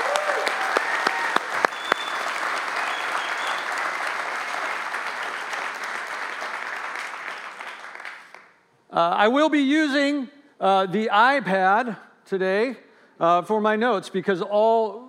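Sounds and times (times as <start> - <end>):
audience applause for veterans and service people: 0.0 - 8.5
speech: 9.0 - 15.0.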